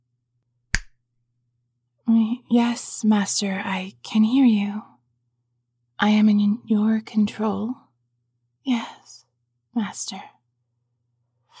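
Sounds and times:
finger snap: 0.7 - 1.0
speech: 2.5 - 4.9, 6.0 - 7.8, 8.7 - 9.1, 9.8 - 10.4.

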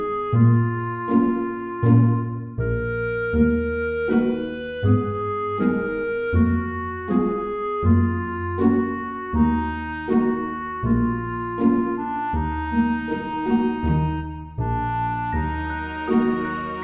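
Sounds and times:
cello music: 0.0 - 16.8.

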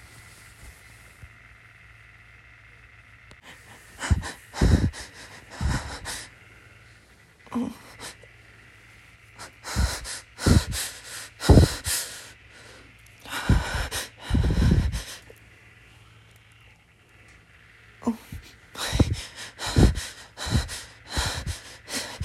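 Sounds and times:
incoherent noises: 3.4 - 6.6, 9.4 - 15.4, 18.0 - 22.2.

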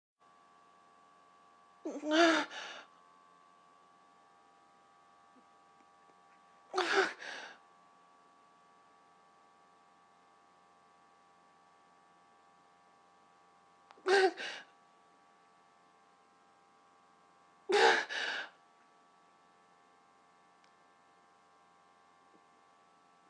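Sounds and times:
person moaning: 1.9 - 2.8, 6.8 - 7.5, 14.1 - 14.6, 17.7 - 18.4.

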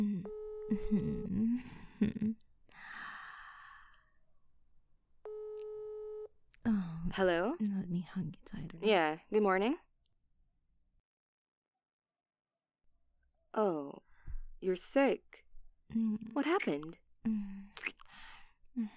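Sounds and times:
touch-tone beeps of a number being dialed: 0.2 - 1.3
steady electronic phone tone: 0.2 - 1.4, 5.3 - 6.3
speech: 0.7 - 2.4, 7.2 - 9.8, 14.7 - 17.5, 18.8 - 18.9.

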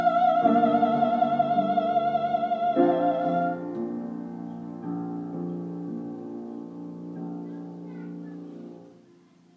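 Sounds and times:
opera singing: 0.0 - 3.7.

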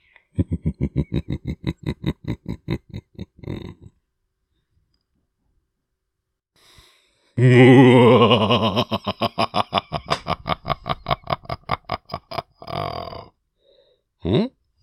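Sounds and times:
silly laugh: 0.3 - 4.0, 7.4 - 13.3.

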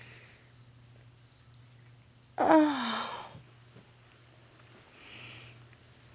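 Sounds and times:
moans: 2.4 - 3.4.

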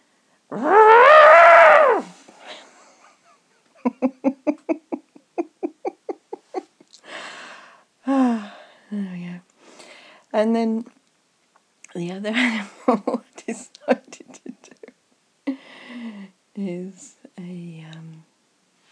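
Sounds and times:
voice imitating an elephant trumpeting: 0.5 - 2.1
speech: 10.4 - 11.0, 12.0 - 13.8.

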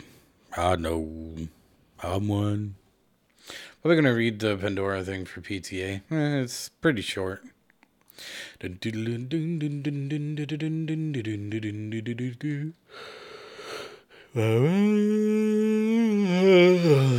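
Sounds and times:
speech: 0.6 - 2.8, 3.4 - 7.6, 8.2 - 13.2, 14.3 - 17.1
person yawning: 14.3 - 17.1.

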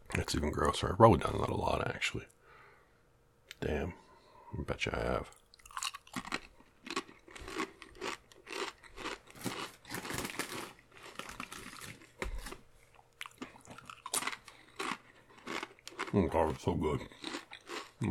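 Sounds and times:
speech: 0.2 - 2.4, 3.6 - 5.4, 16.2 - 17.3
chewing crunchy chips with mouth full: 5.3 - 18.0.

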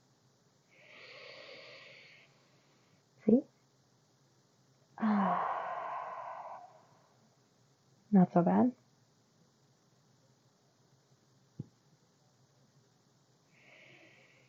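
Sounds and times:
deep breath: 0.7 - 3.0, 5.0 - 7.3, 13.5 - 14.4
speech: 3.3 - 3.5, 8.2 - 8.9.

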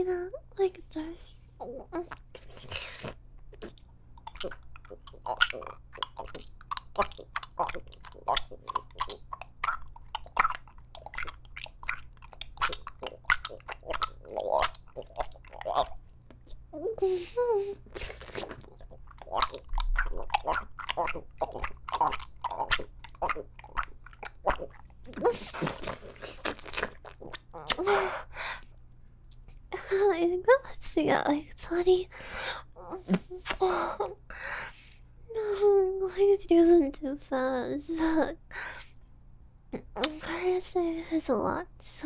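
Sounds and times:
speech: 0.0 - 3.2, 4.4 - 4.6, 40.8 - 42.0
low steady hum: 0.0 - 42.0
clicky mouth and throat sounds: 2.1 - 16.6, 17.8 - 28.0, 39.8 - 40.3
wet glugging swallows of a drink: 2.1 - 16.7, 17.7 - 28.1.

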